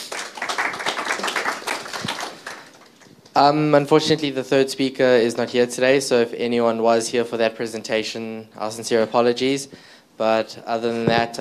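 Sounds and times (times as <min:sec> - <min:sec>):
audience applause: 0:00.0 - 0:03.1
speech: 0:03.4 - 0:11.3.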